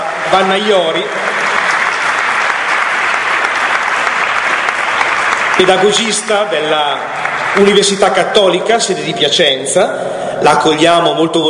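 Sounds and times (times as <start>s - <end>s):
audience applause welcoming a guest onto a stage: 0.0s - 8.7s
speech: 0.3s - 1.3s, 5.6s - 11.4s.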